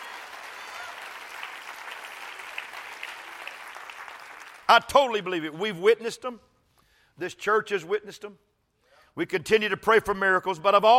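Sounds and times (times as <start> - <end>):
audience applause: 0.0 - 4.7
speech: 4.7 - 6.5, 7.2 - 8.5, 9.2 - 10.9.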